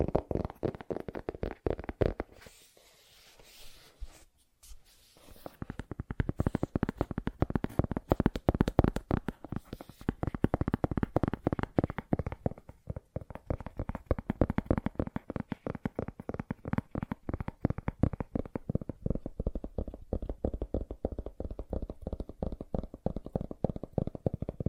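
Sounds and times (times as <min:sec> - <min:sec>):
fast tapping: 0:00.0 - 0:02.4, 0:05.5 - 0:24.6.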